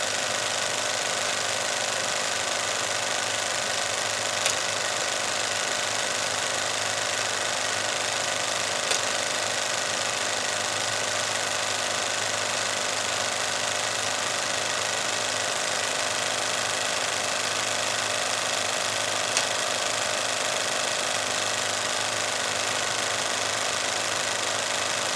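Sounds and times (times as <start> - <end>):
16mm reel-to-reel film projector running: 0.0 - 25.1.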